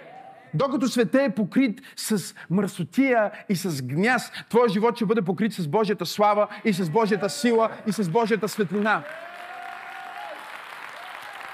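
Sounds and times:
speech: 0.5 - 9.3
audience clapping: 7.4 - 11.5.

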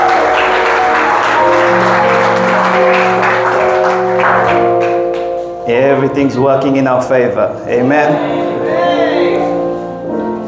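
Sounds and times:
crowd clapping hands in praise: 0.0 - 5.4
sustained organ-like music chords: 0.0 - 10.4
speech: 5.9 - 8.8.

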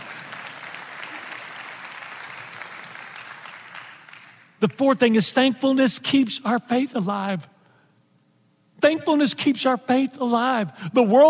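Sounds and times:
audience applause: 0.0 - 4.5
speech: 4.6 - 7.5, 8.8 - 11.2.

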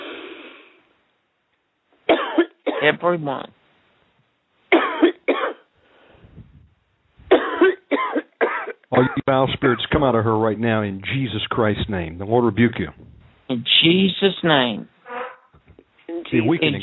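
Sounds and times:
people coughing: 2.1 - 2.9, 4.7 - 5.7, 7.3 - 10.1
speech: 2.8 - 3.6, 9.3 - 14.9, 16.3 - 16.8
faint low rumbling: 6.2 - 7.4, 9.2 - 13.8.

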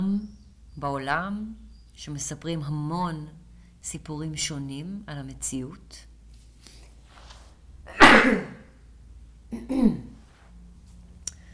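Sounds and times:
speech: 0.1 - 6.1, 7.9 - 8.6, 9.5 - 10.1
person sneezing: 7.9 - 8.7.

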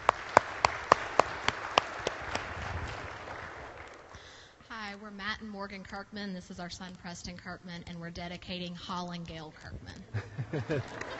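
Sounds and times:
round of applause: 0.0 - 4.5, 10.6 - 11.1
speech: 5.0 - 11.1
laughter: 10.1 - 11.1.

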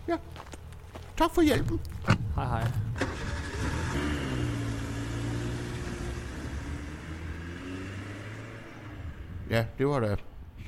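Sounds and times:
speech: 0.1 - 0.6, 1.2 - 3.1, 9.5 - 10.6
car engine starting and driving off: 2.0 - 9.6.

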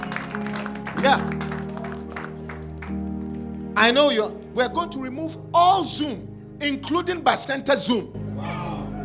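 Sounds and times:
audience clapping hands: 0.0 - 3.8
speech: 0.4 - 1.5, 3.8 - 8.6.

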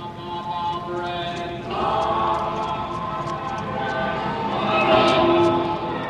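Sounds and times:
pop song from passing car radios: 0.0 - 6.0.

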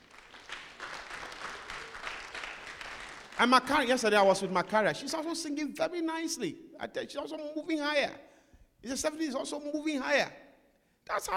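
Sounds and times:
audience clapping: 0.0 - 4.0
speech: 3.4 - 10.4, 11.1 - 11.3.

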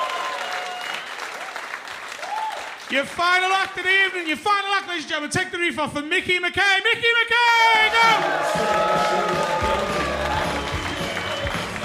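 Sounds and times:
audience applauding a performer on stage: 0.0 - 3.1, 7.7 - 11.8
speech: 2.9 - 9.4.

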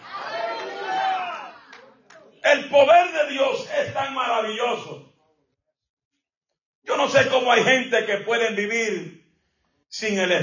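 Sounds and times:
crowd shouting hallelujah: 0.0 - 2.0
speech: 2.6 - 5.1, 6.9 - 9.2, 9.9 - 10.4.

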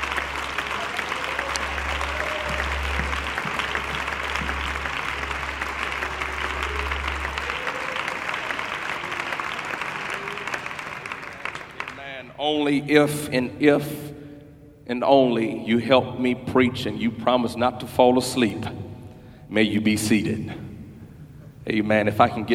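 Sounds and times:
audience clapping hands loudly: 0.0 - 12.6
speech: 12.5 - 14.1, 14.9 - 18.8, 19.5 - 20.6, 21.7 - 22.5.

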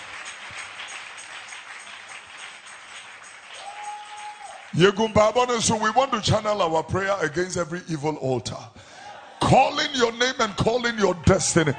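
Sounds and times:
audience clapping hands: 0.0 - 6.2
speech: 4.7 - 8.8, 9.5 - 11.7.

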